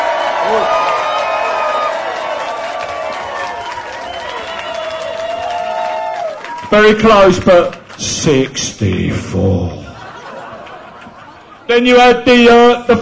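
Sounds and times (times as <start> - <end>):
audience applause: 0.0 - 8.6
speech: 0.5 - 0.7, 6.7 - 9.9, 11.7 - 13.0
laughter: 9.6 - 11.9.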